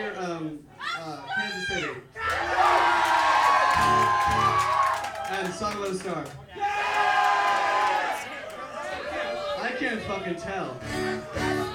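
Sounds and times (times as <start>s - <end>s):
speech: 0.2s - 2.2s, 5.3s - 6.6s, 9.8s - 11.7s
crowd cheering and whooping: 2.3s - 5.6s, 6.5s - 9.6s, 10.8s - 11.7s.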